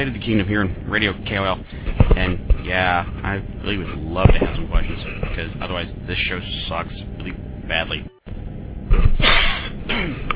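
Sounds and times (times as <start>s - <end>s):
speech: 0.0s - 8.1s
person coughing: 9.2s - 10.3s.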